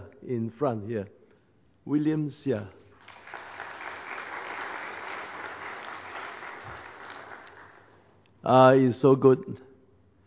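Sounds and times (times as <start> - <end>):
speech: 0.3 - 1.2, 1.8 - 2.8, 8.4 - 9.7
audience clapping: 2.9 - 8.2.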